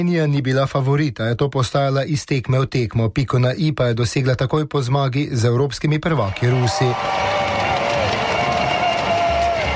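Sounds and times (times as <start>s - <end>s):
speech: 0.0s - 7.5s
volleyball arena crowd cheering: 6.3s - 9.7s.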